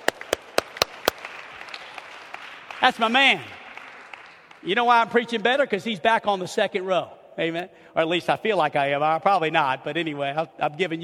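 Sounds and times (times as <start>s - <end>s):
audience clapping hands in praise: 0.0s - 4.6s
speech: 2.8s - 3.6s, 4.6s - 11.0s.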